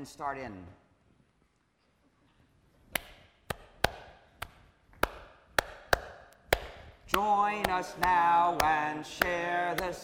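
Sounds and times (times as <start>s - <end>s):
speech: 0.0s - 0.8s, 7.1s - 10.0s
hand clapping two measures of rhythm: 3.0s - 10.0s.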